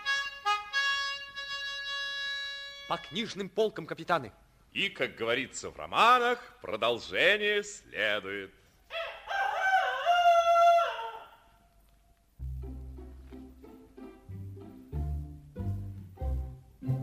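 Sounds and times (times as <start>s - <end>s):
speech: 2.9s - 8.6s
rooster crowing outside a window: 8.9s - 11.6s
melodic tune with a deep bass line: 12.4s - 17.0s.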